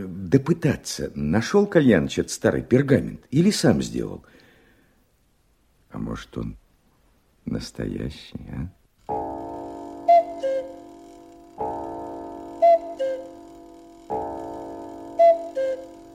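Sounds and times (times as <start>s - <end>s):
speech: 0.0s - 4.4s, 5.9s - 6.6s, 7.4s - 8.8s
buzzy wheezy drone from the cuckoo clock mechanism: 9.1s - 16.1s
old cuckoo clock calling: 9.1s - 16.1s.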